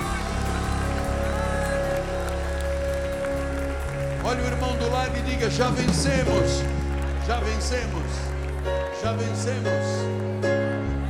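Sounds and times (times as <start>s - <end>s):
audience applause: 0.0s - 10.5s
sustained keyboard chord and bass notes: 0.0s - 11.0s
speech: 4.3s - 11.0s.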